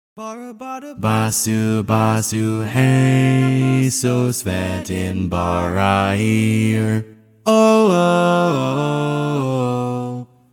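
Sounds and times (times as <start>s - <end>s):
TTBB barbershop tags bass part: 0.2s - 10.5s.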